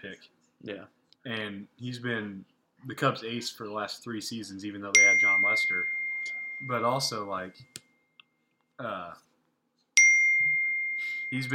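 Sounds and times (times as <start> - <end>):
speech: 0.0 - 6.0, 6.6 - 7.8, 8.8 - 9.3, 11.3 - 11.5
phone notification ding: 5.0 - 7.1, 10.0 - 11.5.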